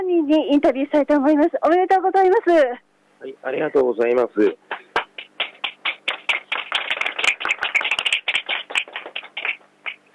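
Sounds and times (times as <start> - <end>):
speech: 0.0 - 4.8
supporters clapping and applauding: 4.7 - 10.1.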